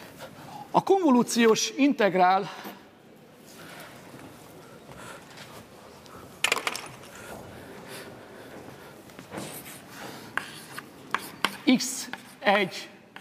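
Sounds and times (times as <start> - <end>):
speech: 0.7 - 2.8, 11.8 - 12.9
writing on a board during a lecture: 9.4 - 13.1.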